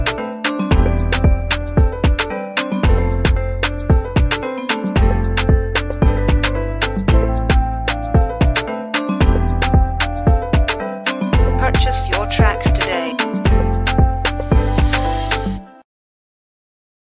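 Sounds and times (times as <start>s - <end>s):
afrobeat instrumental music: 0.0s - 15.8s.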